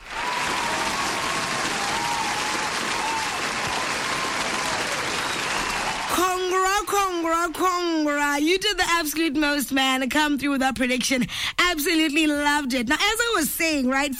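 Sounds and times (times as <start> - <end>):
loud applause from many hands: 0.0 - 7.6
speech: 7.4 - 14.1.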